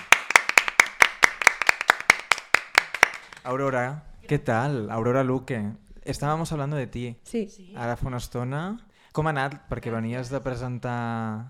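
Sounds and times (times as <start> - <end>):
audience applause: 0.0 - 3.4
speech: 3.4 - 11.4.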